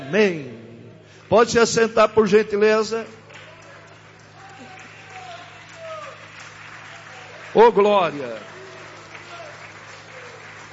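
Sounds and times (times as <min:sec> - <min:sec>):
speech: 0:00.1 - 0:00.6, 0:01.3 - 0:03.2, 0:07.6 - 0:08.6
audience applauding: 0:03.0 - 0:10.7.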